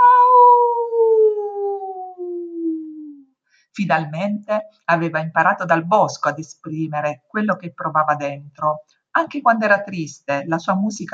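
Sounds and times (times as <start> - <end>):
animal howling: 0.0 - 3.2
speech: 3.8 - 11.1.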